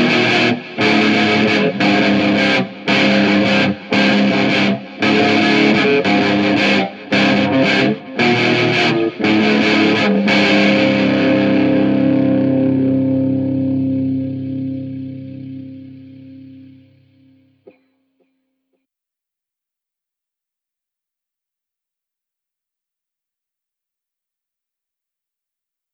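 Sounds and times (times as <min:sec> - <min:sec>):
guitar playing: 0:00.0 - 0:17.7.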